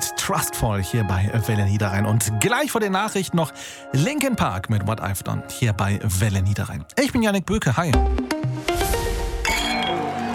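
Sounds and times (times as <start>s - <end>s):
speech: 0.3s - 8.7s
glasses clinking in a toast: 9.5s - 10.1s.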